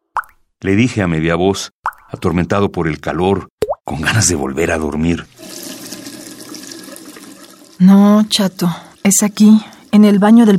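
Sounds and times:
speech: 0.6s - 5.6s, 7.8s - 10.5s
shower water running: 5.3s - 10.5s.

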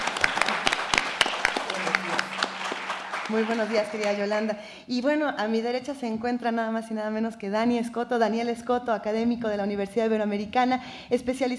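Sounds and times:
applause: 0.0s - 4.5s
speech: 3.3s - 11.5s.

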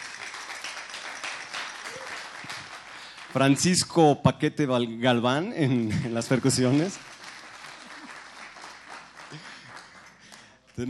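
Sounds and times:
crowd applauding: 0.0s - 3.9s, 6.0s - 10.8s
crowd whooping: 1.8s - 2.4s
speech: 3.3s - 7.2s.

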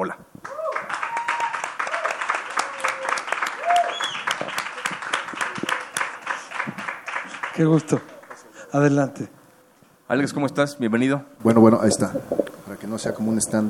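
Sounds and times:
speech: 0.0s - 0.3s, 7.6s - 8.1s, 8.7s - 9.4s, 10.1s - 13.6s
audience applause: 0.4s - 8.6s.

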